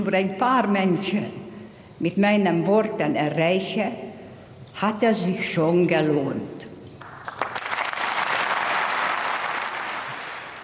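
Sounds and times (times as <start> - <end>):
speech: 0.0 - 1.4, 2.0 - 4.0, 4.8 - 6.7
audience applause: 7.0 - 10.6.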